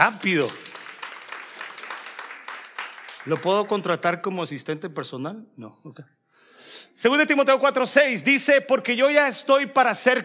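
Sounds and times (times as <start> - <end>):
speech: 0.0 - 0.6, 3.2 - 6.2, 6.8 - 10.2
audience applause: 0.0 - 4.1.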